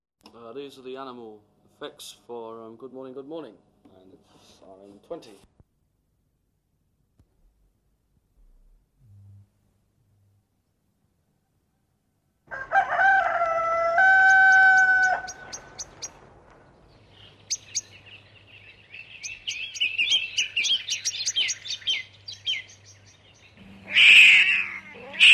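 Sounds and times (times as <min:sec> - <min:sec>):
animal noises: 0:13.5 - 0:25.3.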